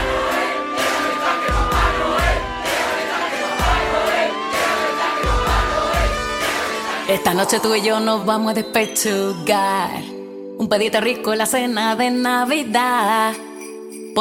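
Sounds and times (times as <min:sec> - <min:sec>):
large crowd shouting together: 0:00.0 - 0:07.1
speech: 0:07.1 - 0:13.5.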